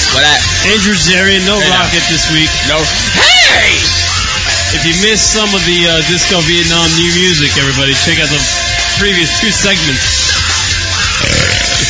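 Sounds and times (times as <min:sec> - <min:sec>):
speech: 0:00.2 - 0:04.1, 0:04.7 - 0:10.2
loud beer belch: 0:11.0 - 0:11.8.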